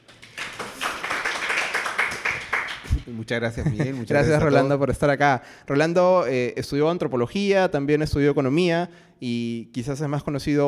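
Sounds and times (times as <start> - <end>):
applause for a guest: 0.0 - 3.1
speech: 3.1 - 10.6.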